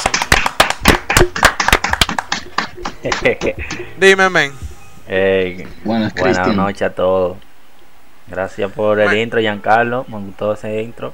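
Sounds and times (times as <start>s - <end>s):
clapping: 0.0s - 3.8s
laughter: 1.9s - 4.0s
speech: 3.0s - 7.4s, 8.3s - 11.1s.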